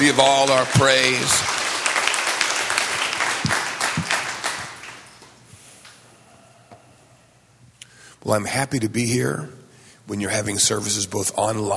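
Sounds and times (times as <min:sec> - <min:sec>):
speech: 0:00.0 - 0:01.6, 0:08.3 - 0:11.7
audience applause: 0:00.0 - 0:05.3.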